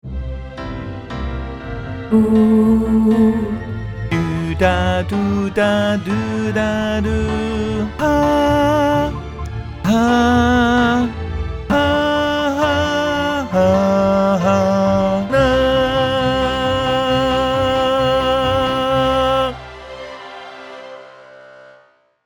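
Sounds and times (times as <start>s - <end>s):
tenor singing: 2.1s - 20.4s.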